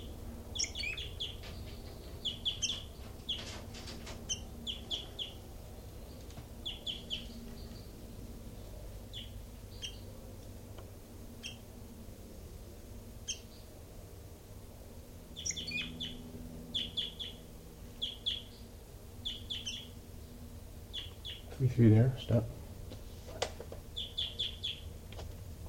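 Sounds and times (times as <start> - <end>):
caged birds chirping: 0.0 - 25.6
low hum: 0.0 - 25.6
faint clatter: 1.4 - 4.3
speech: 21.6 - 22.6.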